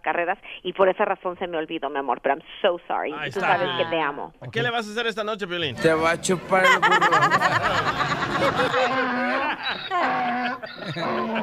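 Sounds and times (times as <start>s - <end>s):
speech: 0.0s - 11.4s
laughter: 3.3s - 3.9s, 5.8s - 11.4s
donkey braying: 8.6s - 11.4s.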